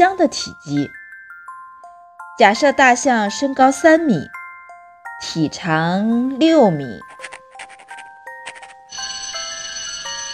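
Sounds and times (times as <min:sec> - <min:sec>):
speech: 0:00.0 - 0:01.0, 0:02.4 - 0:04.4, 0:05.2 - 0:07.4
school class-dismissal bell ringing: 0:08.5 - 0:10.3.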